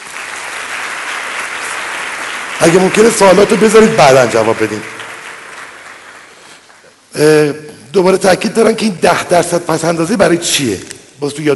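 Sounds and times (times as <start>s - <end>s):
seminar audience applause: 0.0s - 7.0s
speech: 2.6s - 5.0s, 7.2s - 11.5s.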